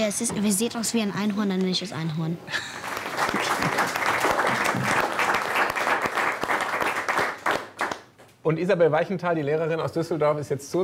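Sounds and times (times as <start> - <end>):
speech: 0.0 - 4.0, 8.4 - 10.8
studio audience applause: 2.8 - 8.1.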